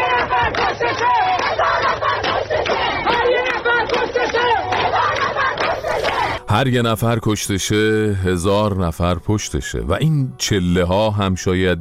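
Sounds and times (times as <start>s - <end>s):
protest crowd chanting a slogan: 0.0s - 6.5s
speech: 6.5s - 11.8s.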